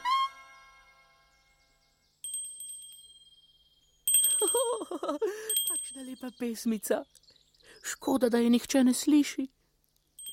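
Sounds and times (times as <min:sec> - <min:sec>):
small bell ringing: 0:02.2 - 0:06.7, 0:10.2 - 0:10.3
speech: 0:04.4 - 0:09.6.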